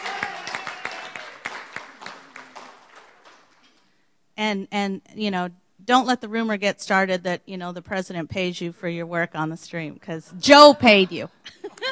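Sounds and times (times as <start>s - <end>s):
audience round of applause: 0.0s - 3.7s
speech: 4.4s - 11.6s.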